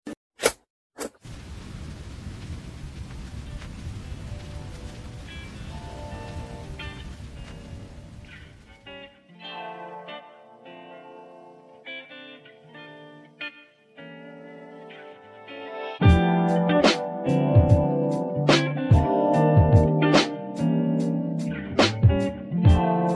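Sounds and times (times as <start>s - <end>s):
lo-fi beat: 16.0s - 23.1s.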